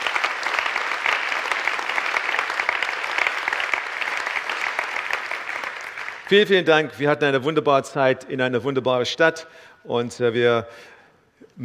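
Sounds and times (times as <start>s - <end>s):
audience applause: 0.0s - 6.5s
speech: 6.3s - 10.9s.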